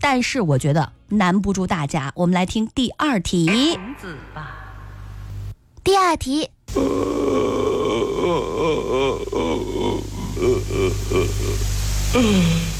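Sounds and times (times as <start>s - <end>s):
speech: 0.1s - 4.6s, 5.8s - 7.4s, 8.2s - 12.7s
steady low hum: 3.5s - 5.8s, 6.5s - 12.7s
old man crying: 6.7s - 12.7s.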